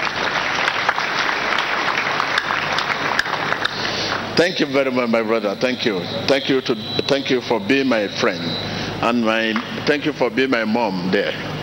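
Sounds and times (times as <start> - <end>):
people clapping for a person: 0.0 - 4.8
speech: 4.4 - 11.6.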